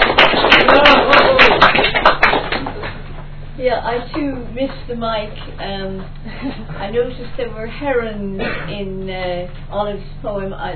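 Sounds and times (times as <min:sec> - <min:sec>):
audience clapping: 0:00.0 - 0:03.1
speech: 0:03.8 - 0:10.7.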